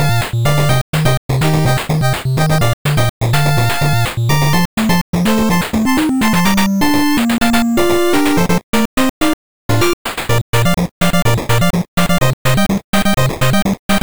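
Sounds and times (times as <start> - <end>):
8bit music for action game: 0.0 - 14.0.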